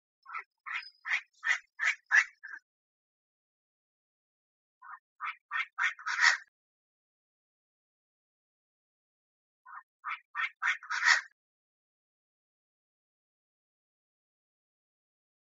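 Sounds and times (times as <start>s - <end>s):
Chinese francolin giving raspy notes: 0.3s - 2.6s, 4.8s - 6.5s, 9.7s - 11.3s.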